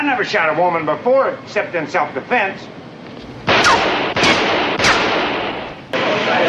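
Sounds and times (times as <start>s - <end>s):
speech: 0.0s - 2.8s
gunshots during a bank robbery confrontation: 3.2s - 6.3s.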